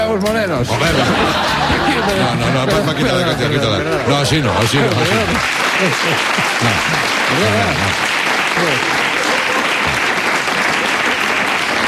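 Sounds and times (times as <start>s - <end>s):
speech: 0.1s - 9.1s
laughter: 0.7s - 11.3s
audience applause: 1.1s - 11.8s.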